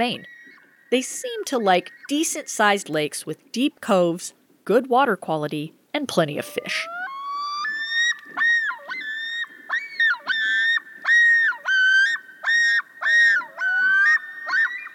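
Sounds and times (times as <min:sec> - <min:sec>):
Common Loon calling: 0:00.0 - 0:02.5, 0:06.4 - 0:14.9
speech: 0:00.0 - 0:07.0.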